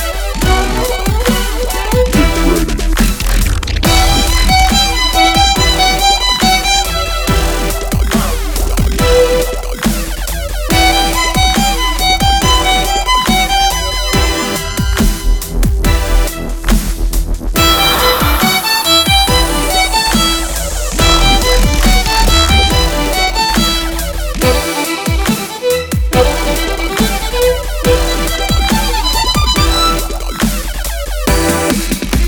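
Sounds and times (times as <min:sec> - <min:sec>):
sad dubstep music with violin: 0:00.0 - 0:32.2.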